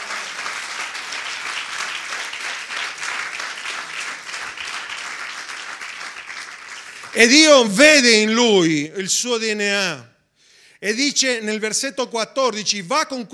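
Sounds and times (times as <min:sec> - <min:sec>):
audience applause: 0:00.0 - 0:07.9
speech: 0:07.1 - 0:10.1, 0:10.8 - 0:13.3.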